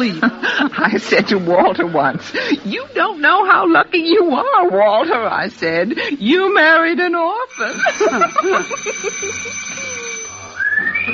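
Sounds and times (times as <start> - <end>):
laughter: 0.0 - 2.7, 7.6 - 10.2
speech: 0.0 - 9.8
person whistling: 10.6 - 11.1.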